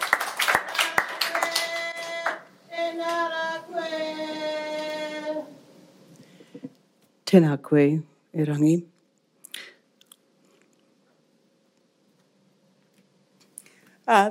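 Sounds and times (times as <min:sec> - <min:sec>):
heartfelt hand claps in a courtroom: 0:00.0 - 0:02.4
voice singing or chanting: 0:00.8 - 0:05.7
speech: 0:07.3 - 0:08.9.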